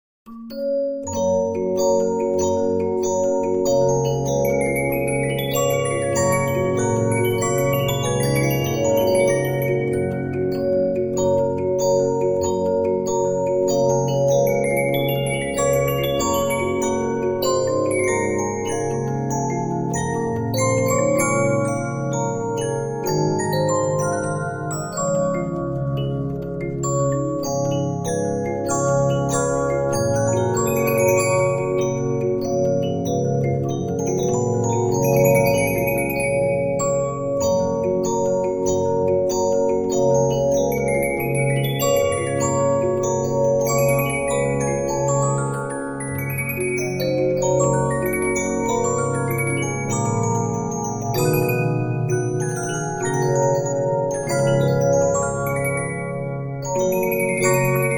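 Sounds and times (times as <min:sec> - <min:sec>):
Regina 15-inch disc music box: 0:00.3 - 0:57.9.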